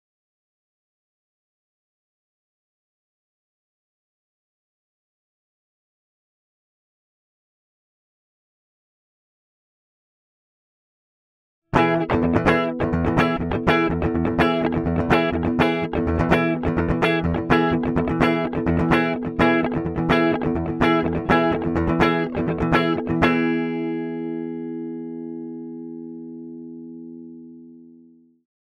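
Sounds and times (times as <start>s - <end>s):
bass guitar through amp simulator without plugin: 11.8s - 27.3s.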